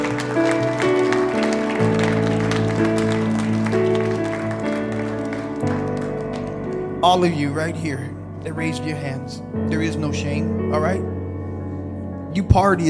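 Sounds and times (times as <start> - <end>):
audience clapping: 0.0 - 7.4
organ or keyboard chords: 0.0 - 12.8
speech: 7.1 - 11.1, 12.4 - 12.8.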